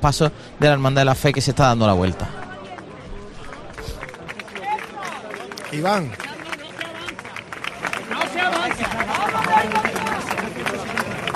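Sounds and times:
speech: 0.0s - 2.4s, 5.7s - 6.2s
crowd applause at street procession: 2.4s - 11.3s.

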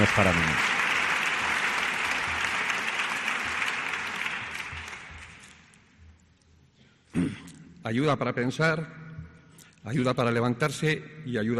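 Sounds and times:
speech: 0.0s - 0.7s, 7.9s - 9.0s, 9.8s - 11.5s
audience applause: 0.0s - 5.6s.

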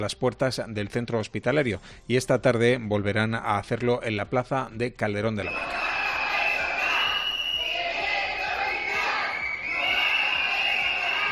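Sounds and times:
speech: 0.0s - 6.0s
protesting health workers chanting a slogan: 5.5s - 11.3s.

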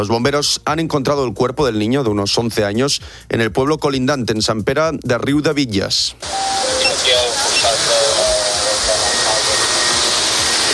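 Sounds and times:
speech: 0.0s - 7.1s
search drones buzzing: 6.2s - 10.7s.

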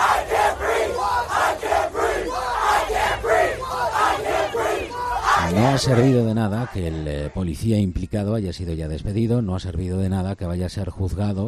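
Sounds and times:
large crowd of protesters chanting a short phrase in unison: 0.0s - 7.3s
speech: 5.6s - 11.4s.

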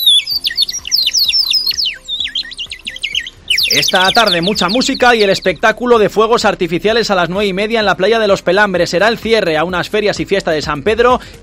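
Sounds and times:
water-filled bird-shaped whistles warbling: 0.0s - 5.6s
soft steady low thumping beat: 0.0s - 11.4s
speech: 3.7s - 11.4s.

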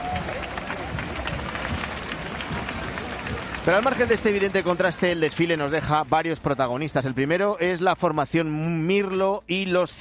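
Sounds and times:
faint murmur of voices: 0.0s - 7.8s
large crowd applauding: 0.0s - 9.2s
speech: 3.6s - 9.9s.

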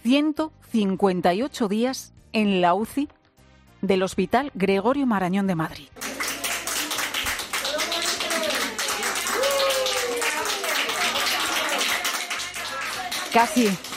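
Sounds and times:
speech: 0.1s - 3.2s, 3.8s - 6.0s, 13.3s - 13.9s
applause for a patient leaving the ICU: 6.0s - 13.9s.

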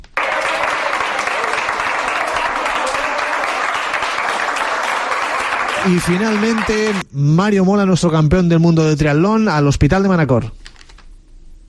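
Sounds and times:
applause: 0.0s - 7.0s
speech: 5.8s - 10.6s.

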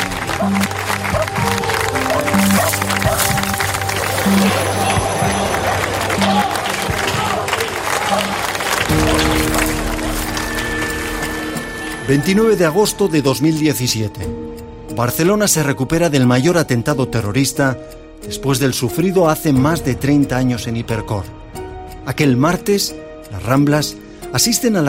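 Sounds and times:
crowd applauding in a street: 0.0s - 12.0s
speech: 0.4s - 0.8s, 12.1s - 14.4s, 15.0s - 21.4s, 22.1s - 24.8s.

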